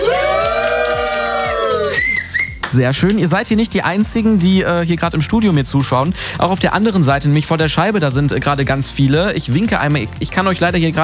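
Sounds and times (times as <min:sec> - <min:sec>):
festival crowd cheering at the Essen Light Festival: 0:00.0 - 0:02.7
speech: 0:02.7 - 0:11.0.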